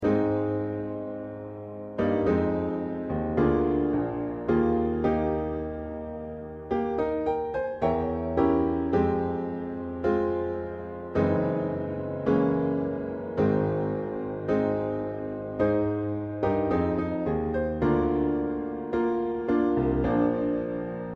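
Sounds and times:
piano: 0.0 - 21.1.

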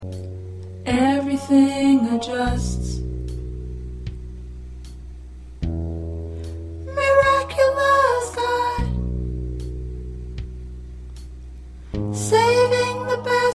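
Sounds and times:
soprano singing: 0.8 - 3.1, 6.9 - 9.0, 12.2 - 13.5.

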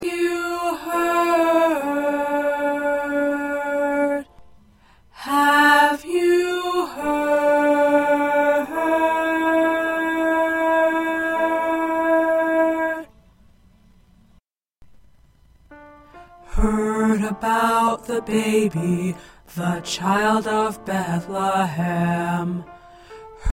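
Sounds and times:
first tenor voice singing: 0.0 - 4.3, 5.2 - 13.2, 16.5 - 22.7.

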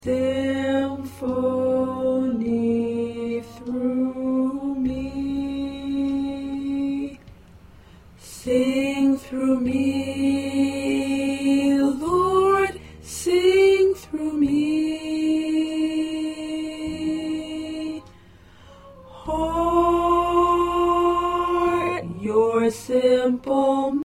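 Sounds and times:
tenor choir part singing: 0.0 - 7.3, 8.2 - 18.1, 19.0 - 24.0.

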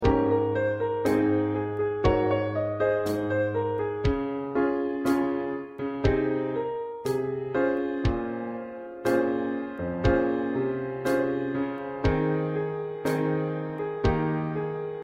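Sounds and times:
piano: 0.0 - 15.0
drum: 4.1 - 4.3, 10.1 - 10.3, 12.1 - 12.3.

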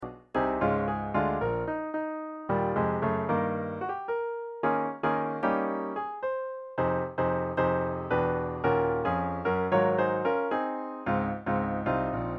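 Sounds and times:
piano: 0.0 - 12.3.

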